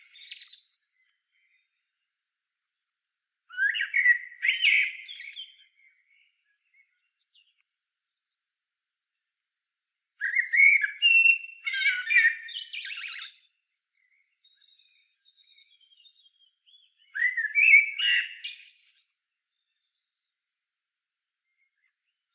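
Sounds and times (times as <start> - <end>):
common blackbird singing: 0.0 - 1.8, 3.5 - 8.6, 10.2 - 20.3.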